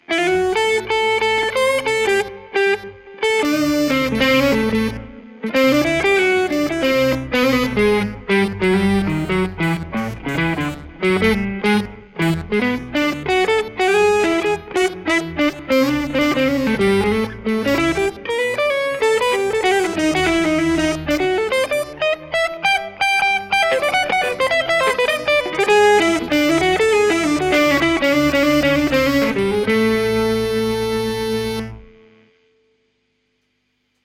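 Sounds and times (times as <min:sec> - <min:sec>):
guitar: 0:00.0 - 0:33.0.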